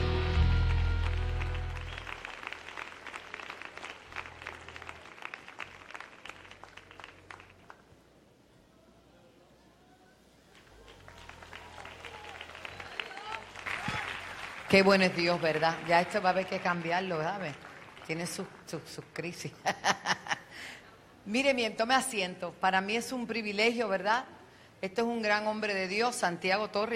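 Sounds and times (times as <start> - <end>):
church congregation hand claps: 0.8 - 7.9, 10.5 - 18.6
speech: 14.7 - 26.9.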